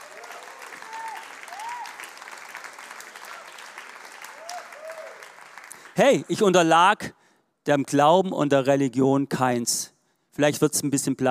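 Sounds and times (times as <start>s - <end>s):
audience whistles and cheers: 0.0s - 2.4s, 3.1s - 5.4s
audience applause: 0.0s - 6.2s
speech: 6.0s - 11.2s.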